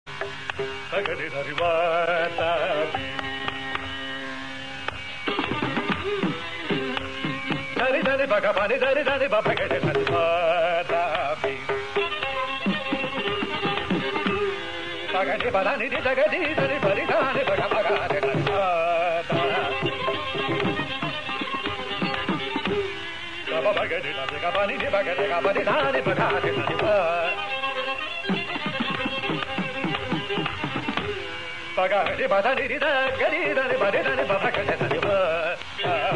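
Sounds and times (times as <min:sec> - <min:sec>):
carnatic swarakalpana vocal improvisation in raga Hamsadhwani: 0:00.4 - 0:36.1.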